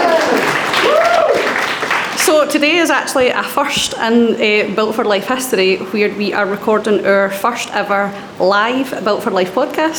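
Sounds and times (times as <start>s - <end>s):
live audience clapping: 0.0s - 2.5s
speech: 2.4s - 9.9s.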